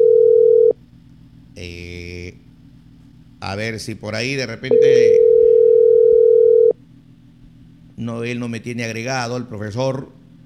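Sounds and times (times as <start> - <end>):
telephone ringing tone while placing a call: 0.0 - 0.8, 4.7 - 6.8
speech: 3.5 - 5.2, 8.0 - 10.2.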